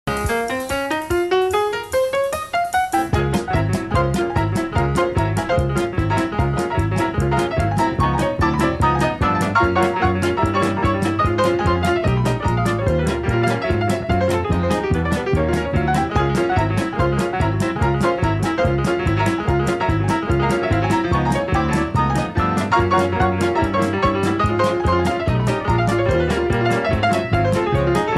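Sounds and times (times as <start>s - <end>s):
cabaret jazz music: 0.0s - 28.1s.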